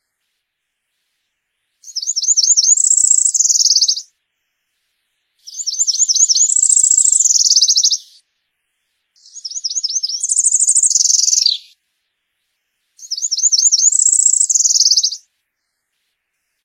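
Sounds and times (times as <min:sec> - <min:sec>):
cerulean warbler buzzy song of slurred notes ending in a dry rapid trill: 0:00.0 - 0:16.6.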